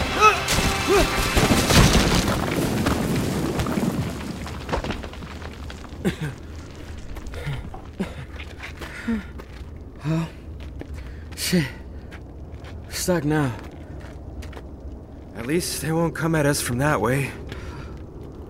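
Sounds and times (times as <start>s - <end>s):
scattered smaller knocks and debris hits: 0.0s - 8.2s
rumbling crash of a cave caving in: 0.0s - 18.4s
speech: 0.9s - 1.2s, 13.0s - 13.7s, 15.5s - 17.4s.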